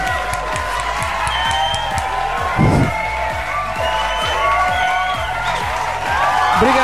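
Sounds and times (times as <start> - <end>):
crowd cheering and applauding: 0.0 - 6.8.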